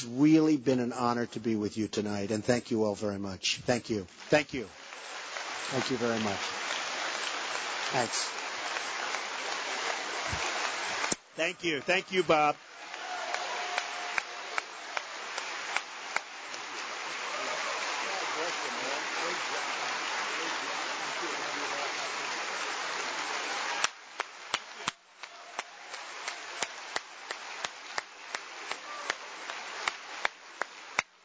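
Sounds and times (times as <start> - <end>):
speech: 0.0 - 4.8, 5.7 - 6.8, 7.9 - 8.4, 11.4 - 12.7
audience applause: 4.4 - 31.1.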